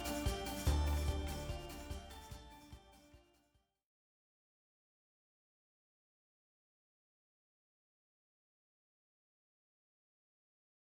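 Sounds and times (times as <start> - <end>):
instrumental track: 0.0 - 3.2.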